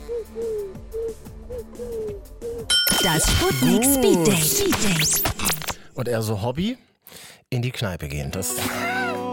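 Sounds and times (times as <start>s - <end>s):
person imitating a pigeon's coo: 0.0s - 5.2s, 8.6s - 9.2s
speech: 3.0s - 5.4s, 6.0s - 6.9s, 7.5s - 9.0s.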